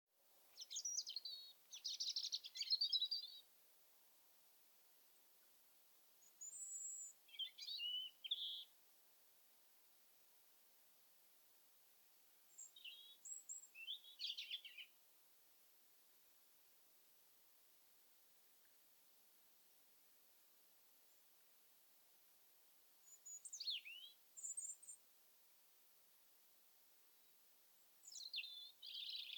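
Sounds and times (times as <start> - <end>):
European robin singing: 0.5 - 3.5, 6.2 - 8.7, 12.5 - 15.0, 23.0 - 25.0, 28.0 - 29.3.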